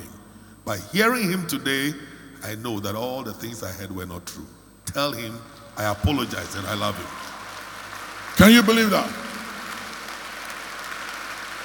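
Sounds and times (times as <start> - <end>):
speech: 0.7 - 7.3, 8.4 - 9.3
audience clapping: 5.8 - 11.6.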